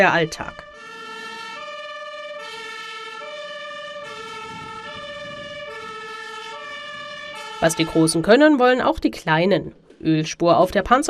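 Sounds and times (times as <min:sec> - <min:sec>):
speech: 0:00.0 - 0:00.7, 0:07.6 - 0:11.0
fire engine siren: 0:00.0 - 0:08.7.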